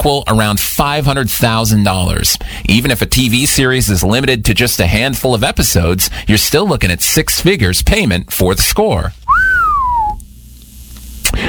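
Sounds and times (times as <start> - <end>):
speech: 0.0 - 9.2
person whistling a descending note imitating a whistle sound effect: 9.3 - 10.2.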